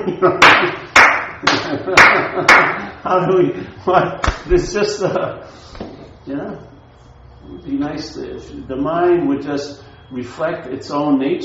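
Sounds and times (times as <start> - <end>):
speech: 0.0 - 0.8, 1.7 - 5.7, 6.3 - 6.7, 7.5 - 11.4
hands clapping: 0.4 - 2.8, 4.2 - 4.5.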